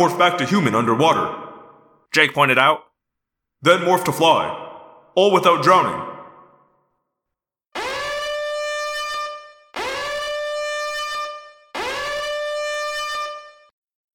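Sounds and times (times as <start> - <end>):
speech: 0.0 - 1.4, 2.1 - 2.9, 3.6 - 4.6, 5.2 - 6.1
alarm siren: 7.8 - 13.8.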